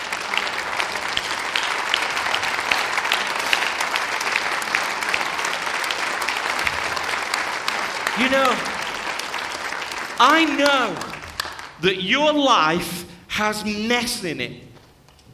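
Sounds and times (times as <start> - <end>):
audience applause and hand clapping: 0.0 - 11.9
speech: 8.2 - 8.7, 10.2 - 11.1, 11.8 - 14.6.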